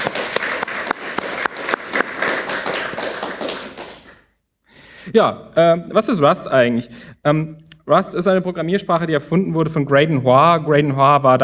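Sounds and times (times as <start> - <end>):
audience applause: 0.0 - 4.2
speech: 5.2 - 11.4.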